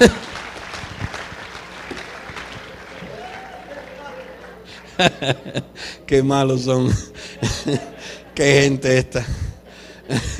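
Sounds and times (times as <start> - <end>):
speech: 0.0 - 0.3, 5.0 - 9.5, 10.1 - 10.3
laughter: 0.0 - 1.5, 2.2 - 10.3
audience applause: 0.0 - 5.1.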